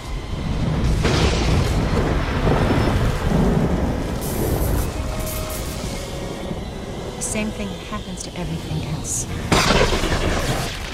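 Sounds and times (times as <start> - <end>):
lightning strike: 0.0 - 6.7, 9.5 - 10.9
speech: 7.4 - 10.8.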